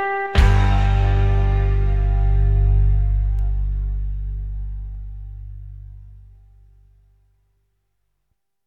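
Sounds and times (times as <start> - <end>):
blues music: 0.0 - 6.5.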